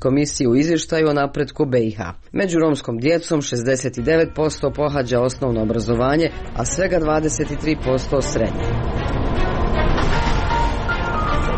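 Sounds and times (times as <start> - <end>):
speech: 0.0 - 9.2
bus engine rumble on a trip from Ilijaš to Sarajevo: 5.6 - 11.5
road noise inside a bus: 5.6 - 11.5.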